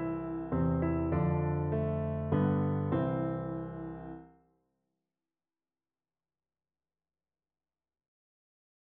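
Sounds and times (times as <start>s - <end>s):
piano duet: 0.0s - 4.2s.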